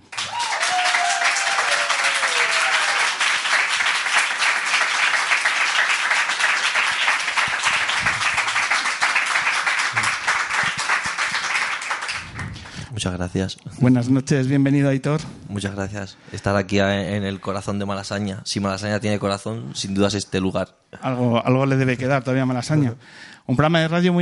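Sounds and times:
audience applauding: 0.0 - 12.9
speech: 13.0 - 24.2.

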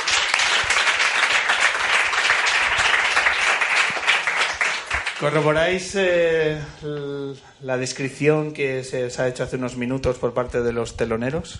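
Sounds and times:
audience applause for the band: 0.0 - 5.9
speech: 5.2 - 11.5.

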